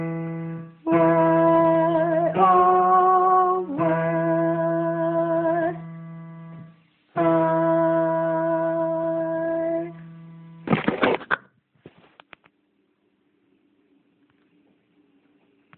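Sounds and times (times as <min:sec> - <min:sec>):
tenor singing: 0:00.8 - 0:05.9, 0:07.2 - 0:10.0.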